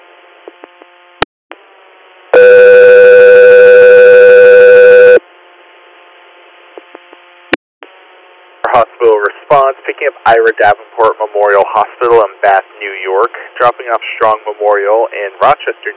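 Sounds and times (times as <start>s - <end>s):
speech: 2.4s - 2.6s, 9.5s - 15.9s
radio dispatch alert tones: 2.4s - 5.2s.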